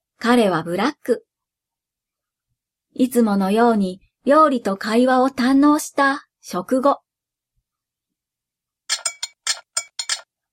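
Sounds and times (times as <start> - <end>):
speech: 0.2 - 1.3, 3.0 - 7.0
teacup rattling on saucer: 8.9 - 10.3.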